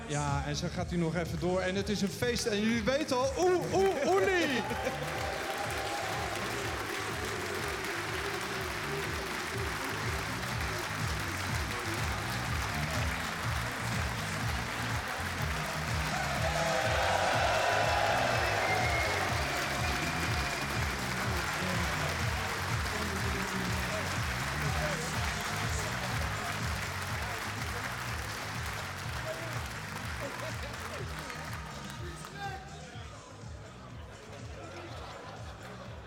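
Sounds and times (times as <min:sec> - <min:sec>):
speech: 0:00.1 - 0:05.4
audience applauding in a hall: 0:01.4 - 0:32.5
laughter: 0:03.4 - 0:05.6, 0:29.2 - 0:31.4, 0:33.7 - 0:36.0
audience cheering in a hall: 0:03.4 - 0:28.3.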